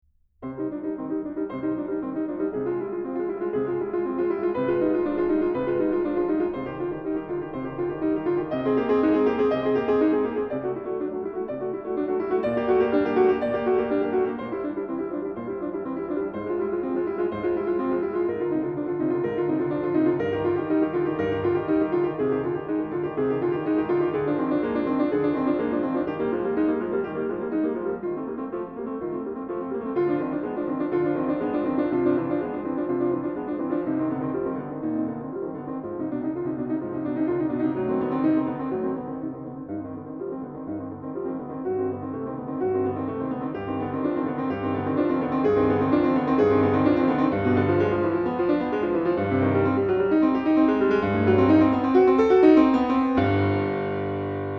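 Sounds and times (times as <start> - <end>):
piano prelude in C minor: 0.0 - 54.5.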